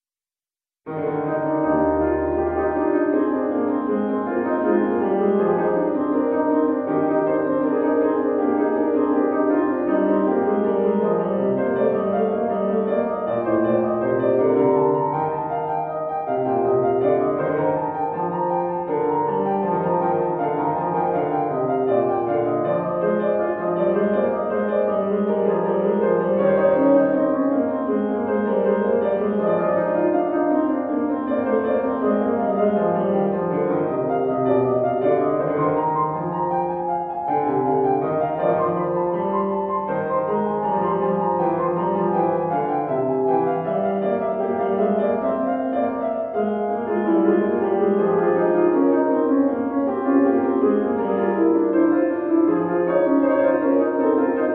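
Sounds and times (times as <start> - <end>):
two-voice piano invention: 0.8 - 54.5.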